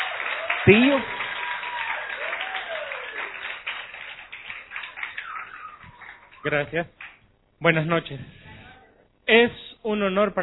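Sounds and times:
audience applause: 0.0 - 7.2
speech: 0.6 - 1.2, 6.4 - 8.4, 9.3 - 10.4.

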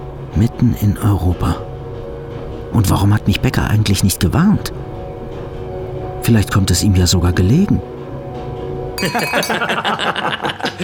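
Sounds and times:
speech: 0.4 - 1.7, 2.7 - 4.9, 6.3 - 7.9, 9.0 - 10.8
glasses clinking in a toast: 9.0 - 10.0
laughter: 9.1 - 10.8.

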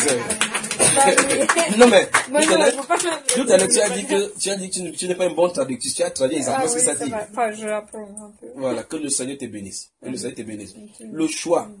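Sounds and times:
audience applauding: 0.0 - 4.0
speech: 0.0 - 11.7.

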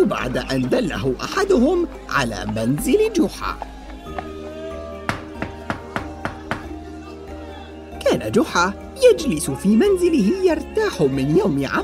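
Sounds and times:
speech: 0.0 - 4.2, 8.2 - 11.8
knocking on a door: 5.1 - 6.7.

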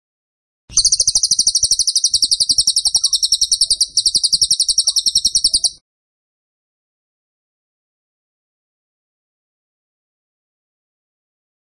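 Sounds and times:
Tembakan bird shrill chirping song: 0.7 - 5.8.

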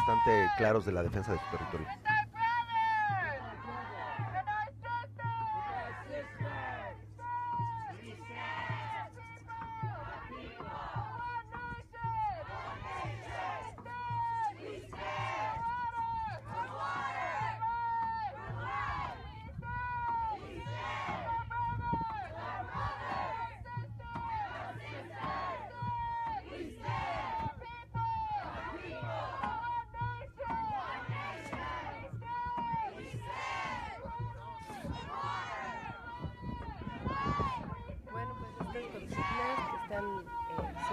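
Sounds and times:
protesters chanting at a sit-in: 0.0 - 40.9
speech: 0.1 - 2.2.

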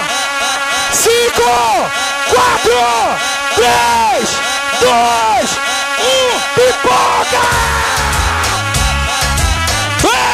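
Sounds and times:
crowd screaming on cue: 0.0 - 10.3
laughter: 0.0 - 10.3
speech: 1.3 - 8.3.

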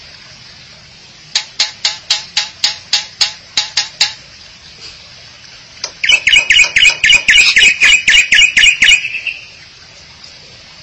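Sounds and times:
starling or myna calls: 6.0 - 9.6.

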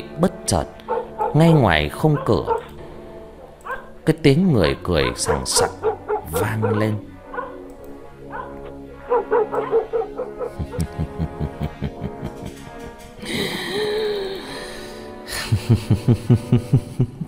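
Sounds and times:
speech: 0.2 - 2.6, 4.0 - 7.1, 16.0 - 17.2
dog barking: 0.9 - 2.8, 3.6 - 4.0, 4.6 - 10.8
laughter: 9.4 - 14.6, 15.3 - 17.2.

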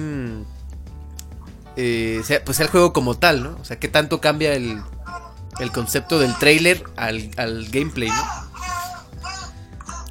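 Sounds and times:
speech: 1.8 - 5.0, 5.6 - 8.4
baby girl babbling: 4.6 - 6.8, 7.8 - 10.1.

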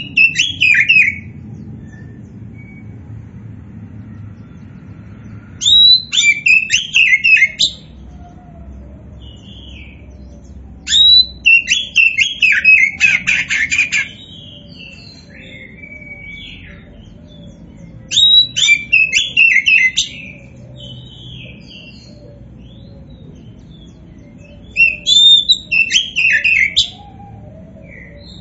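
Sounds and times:
Oriental magpie-robin song: 0.0 - 3.1, 4.1 - 28.3.

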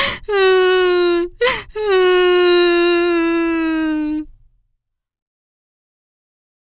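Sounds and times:
young girl lost in a forest crying: 0.0 - 4.3.

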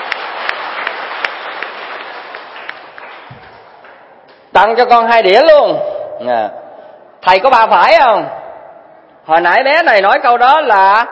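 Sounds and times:
audience applause at a Buddhist lecture: 0.0 - 4.0
speech: 4.6 - 6.6, 7.2 - 8.4, 9.3 - 11.0.

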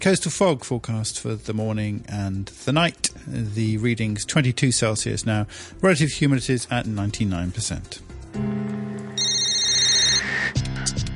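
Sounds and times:
speech: 0.0 - 8.6
bright high-pitched tone: 8.4 - 10.6
telephone ringing with buzzy electronic tones: 8.5 - 10.6.

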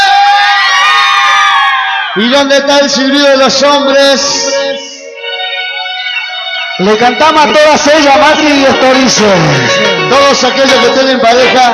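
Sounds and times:
women in audience screaming: 0.0 - 2.3
speech: 2.2 - 4.8, 6.8 - 11.7.

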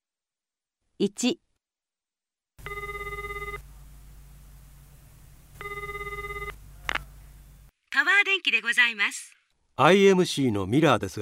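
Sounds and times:
speech: 1.0 - 1.4, 8.4 - 11.2
telephone ringing with bright warbling electronic tone: 2.6 - 3.7, 5.6 - 7.0
low steady hum: 2.6 - 7.7.

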